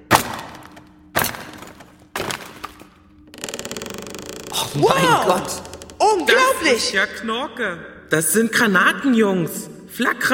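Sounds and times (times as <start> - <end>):
hammer driving a chisel into a wooden crate: 0.0 - 2.8
wood splintering: 0.0 - 6.6
wooden crate lid rattling and creaking as it is pried: 0.4 - 6.8
speech: 4.6 - 10.3.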